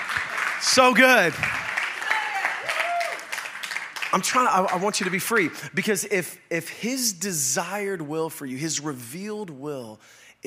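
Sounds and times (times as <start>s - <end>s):
few people clapping: 0.0s - 5.6s
speech: 0.6s - 1.6s, 4.1s - 10.4s.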